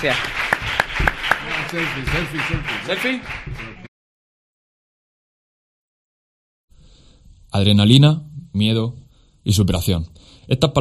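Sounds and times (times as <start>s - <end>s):
speech: 0.0s - 0.4s, 1.7s - 3.6s, 7.5s - 10.7s
audience applause: 0.0s - 3.9s.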